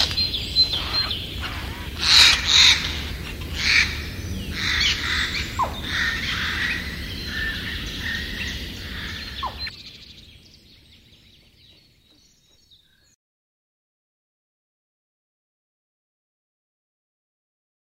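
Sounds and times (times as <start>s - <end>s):
Eurasian jay calling: 0.0s - 9.7s.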